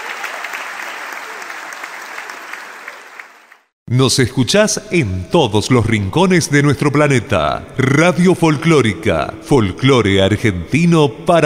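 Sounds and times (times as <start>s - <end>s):
audience applause: 0.0s - 3.7s
speech: 3.9s - 11.4s.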